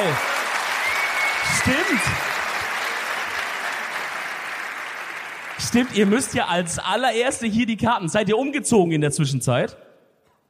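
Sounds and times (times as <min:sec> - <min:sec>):
audience applause at a sold-out live show: 0:00.0 - 0:06.8
speech: 0:01.4 - 0:02.3, 0:05.6 - 0:09.9.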